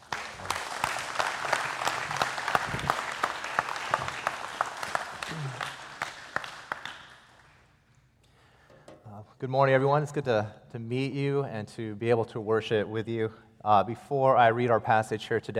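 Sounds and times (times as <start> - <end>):
church congregation applauding to welcome a guest speaker: 0.0 - 7.7
speech: 9.4 - 15.5.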